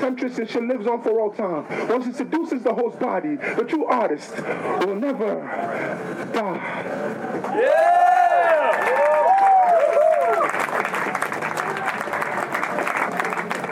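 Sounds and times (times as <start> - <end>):
speech: 0.0 - 9.1
crowd applause: 7.6 - 13.7.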